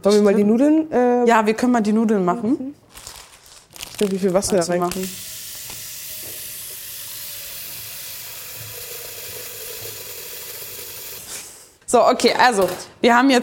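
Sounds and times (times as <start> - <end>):
speech: 0.0 - 2.8, 4.0 - 5.3, 11.9 - 13.4
minced meat sizzling in a pan: 5.0 - 11.4.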